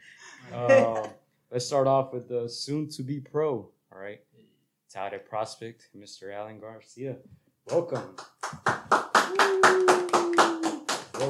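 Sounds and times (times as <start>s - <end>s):
speech: 1.6s - 4.3s, 4.9s - 10.2s
hand clapping: 7.7s - 11.2s.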